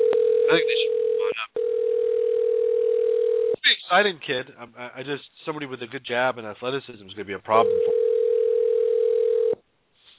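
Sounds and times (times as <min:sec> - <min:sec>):
telephone dial tone on an outgoing call: 0:00.0 - 0:03.6, 0:07.7 - 0:09.6
speech: 0:00.5 - 0:00.8, 0:03.9 - 0:08.0.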